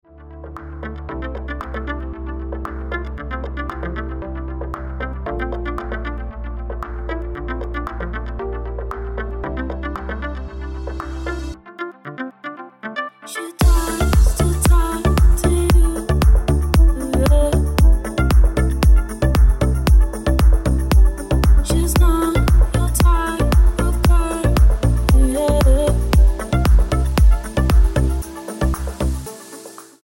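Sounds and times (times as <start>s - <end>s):
ringtone: 9.6s - 30.0s.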